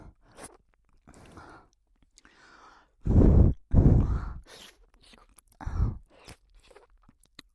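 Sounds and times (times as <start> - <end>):
erotic breathing: 2.2 - 4.6, 5.6 - 6.1.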